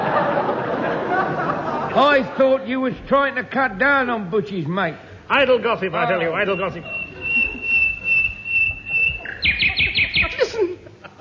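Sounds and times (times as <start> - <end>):
laughter: 0.0 - 3.6, 5.1 - 11.1
low murmur: 0.0 - 11.1
speech: 2.0 - 7.0
bird singing loudly: 6.0 - 10.5.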